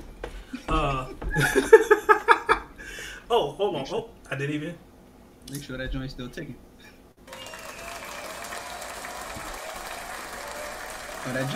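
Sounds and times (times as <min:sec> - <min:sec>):
laughter: 0:00.5 - 0:02.7
speech: 0:00.9 - 0:02.0, 0:03.3 - 0:04.9, 0:05.5 - 0:07.0, 0:11.2 - 0:11.5
round of applause: 0:07.2 - 0:11.5.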